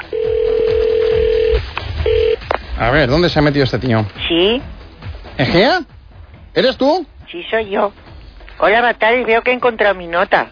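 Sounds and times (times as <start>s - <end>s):
telephone electronic tone as a number is called: 0.0s - 2.5s
speech: 2.8s - 4.7s, 5.4s - 5.9s, 6.6s - 8.0s, 8.6s - 10.4s.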